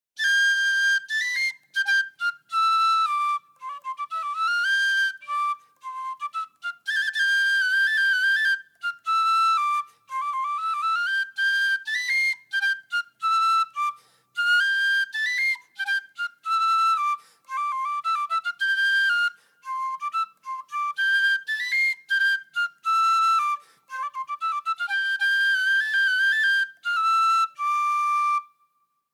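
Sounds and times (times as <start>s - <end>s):
fujarka shepherd's melody from the Beskidy: 0.2s - 28.9s.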